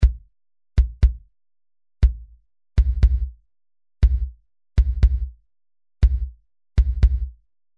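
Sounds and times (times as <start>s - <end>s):
bass drum: 0.0s - 0.2s, 0.8s - 1.2s, 2.0s - 3.4s, 4.0s - 5.4s, 6.0s - 7.4s.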